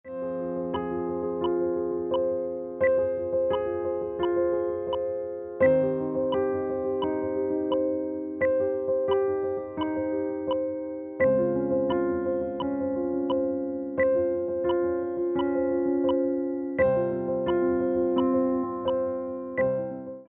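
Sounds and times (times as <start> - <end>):
piano: 0.0 - 20.3.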